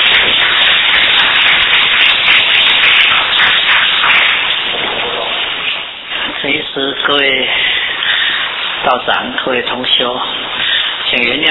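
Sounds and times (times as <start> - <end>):
crowd clapping loudly: 0.0 - 6.0, 7.7 - 8.8
speech: 6.8 - 7.7, 8.8 - 11.5.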